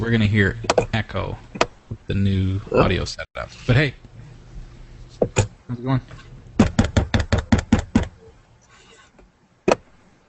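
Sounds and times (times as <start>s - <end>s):
speech: 0.0s - 1.5s, 2.1s - 4.0s, 5.2s - 6.2s
tapping: 6.6s - 8.2s.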